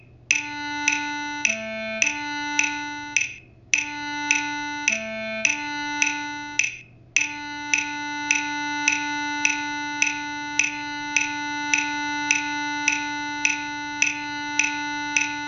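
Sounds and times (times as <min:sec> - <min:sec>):
clarinet: 0:00.3 - 0:15.4.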